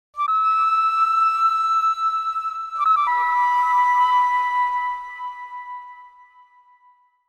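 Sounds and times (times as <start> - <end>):
flute playing: 0.2 - 7.0.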